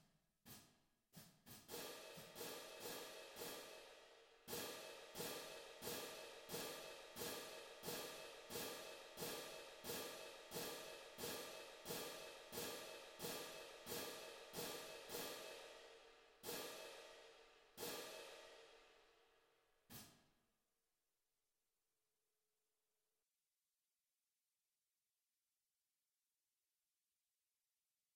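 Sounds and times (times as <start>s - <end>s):
cymbals: 1.7s - 18.7s.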